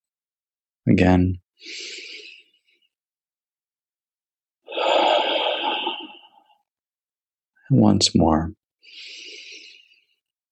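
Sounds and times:
speech: 0:00.8 - 0:02.0, 0:07.7 - 0:09.2
slow breathing during meditation: 0:01.6 - 0:03.0, 0:04.7 - 0:06.6, 0:08.8 - 0:10.3.

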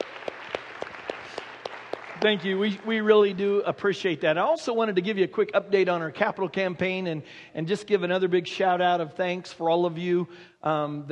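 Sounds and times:
audience applause: 0:00.0 - 0:03.4
speech: 0:02.2 - 0:11.1.

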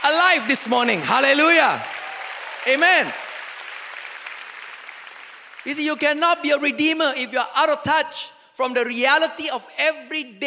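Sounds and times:
crowd applause: 0:00.0 - 0:05.8
speech: 0:00.3 - 0:01.9, 0:02.6 - 0:03.2, 0:05.6 - 0:10.4.

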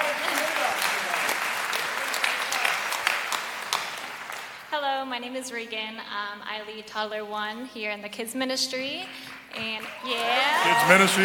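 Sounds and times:
audience clapping: 0:00.0 - 0:04.7, 0:09.0 - 0:11.2
speech: 0:05.0 - 0:11.2.

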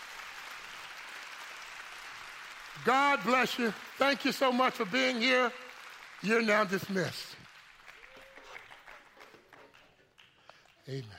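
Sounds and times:
audience applause: 0:00.0 - 0:11.1
speech: 0:02.8 - 0:05.6, 0:06.2 - 0:07.4, 0:10.9 - 0:11.1.

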